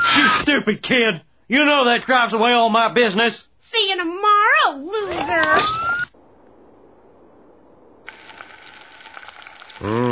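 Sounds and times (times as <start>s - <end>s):
speech: 0.2s - 4.1s
low quiet hum: 4.8s - 9.3s
eggs frying on a car engine block: 8.0s - 10.0s.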